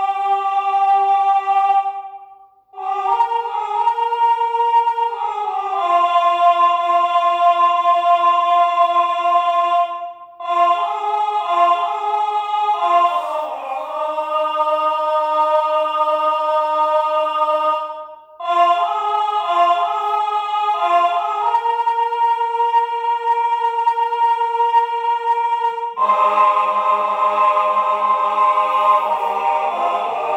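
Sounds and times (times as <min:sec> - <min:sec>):
choir singing: 0:00.0 - 0:30.3.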